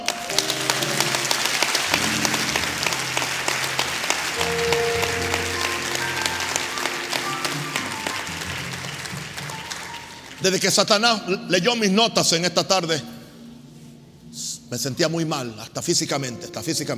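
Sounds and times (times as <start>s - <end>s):
audience applause: 0.0s - 10.8s
speech: 10.4s - 13.1s, 14.7s - 16.9s.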